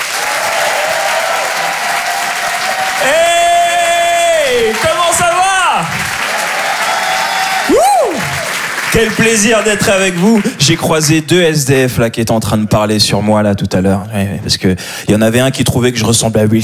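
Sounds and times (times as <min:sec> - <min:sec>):
loud whoops and sustained yelled cheers: 0:00.0 - 0:08.8
audience applauding a comedian onto the stage: 0:00.0 - 0:11.7
speech: 0:09.0 - 0:16.6.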